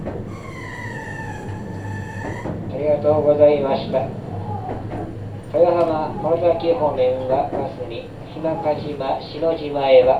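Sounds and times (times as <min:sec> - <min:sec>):
commuter train low rumble and hum: 0:00.0 - 0:10.1
commuter train wheels squealing at terminal station: 0:00.2 - 0:02.8
speech: 0:02.8 - 0:04.2, 0:05.5 - 0:10.1.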